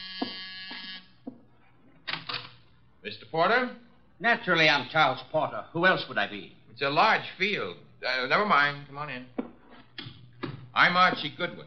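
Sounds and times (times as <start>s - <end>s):
doorbell buzzer: 0.0s - 1.2s
speech: 3.3s - 9.4s, 10.8s - 11.6s.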